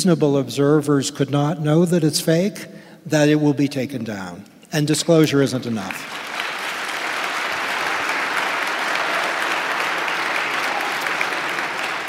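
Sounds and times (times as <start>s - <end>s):
speech: 0.0s - 6.2s
audience applause: 5.9s - 12.0s.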